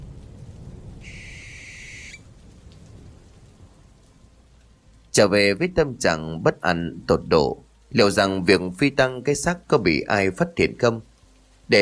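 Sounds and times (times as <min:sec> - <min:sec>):
barn owl crying: 0:01.0 - 0:02.2
speech: 0:05.2 - 0:11.1.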